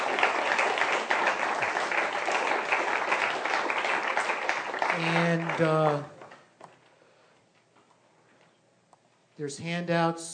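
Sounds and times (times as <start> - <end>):
audience applause: 0.0 - 6.4
speech: 5.0 - 6.2, 9.4 - 10.3.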